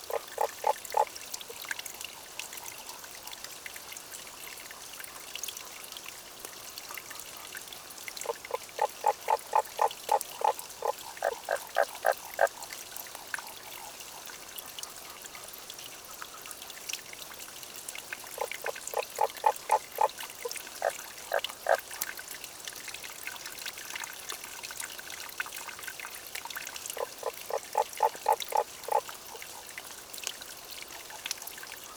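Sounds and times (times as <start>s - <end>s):
running water of a stream: 0.0s - 31.9s
Tago's brown frog croaking: 0.1s - 1.2s, 8.2s - 12.6s, 18.4s - 21.8s, 27.0s - 29.6s.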